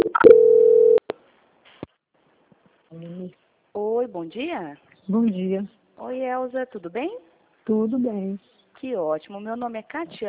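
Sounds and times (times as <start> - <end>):
telephone line tone while a dropped call is transferred: 0.0 - 1.0
speech: 4.1 - 10.2.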